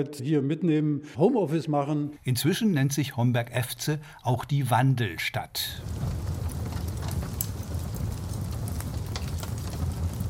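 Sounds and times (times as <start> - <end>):
speech: 0.0 - 6.2
fireplace fire crackling in a farmhouse in Niederurf: 5.6 - 10.2.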